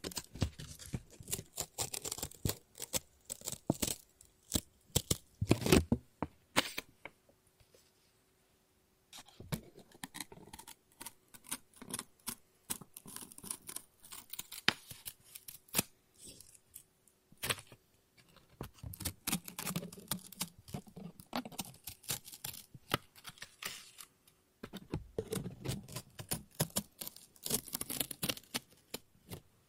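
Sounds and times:
scissors cutting paper: 0.0 - 5.8, 9.6 - 16.8, 18.8 - 24.1, 25.2 - 29.0.

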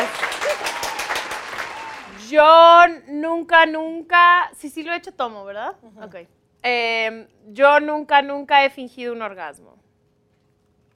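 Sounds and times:
small group clapping: 0.0 - 2.3
speech: 2.3 - 9.8.

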